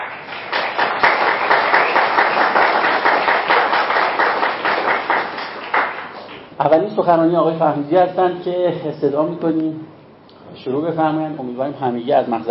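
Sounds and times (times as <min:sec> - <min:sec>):
audience applause for the speakers: 0:00.0 - 0:06.5
speech: 0:06.6 - 0:12.4.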